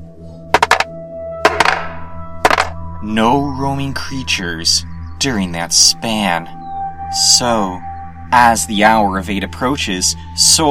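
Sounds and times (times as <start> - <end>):
six-sided die being rolled: 0.6 - 0.9, 1.5 - 2.8
speech: 3.0 - 10.6.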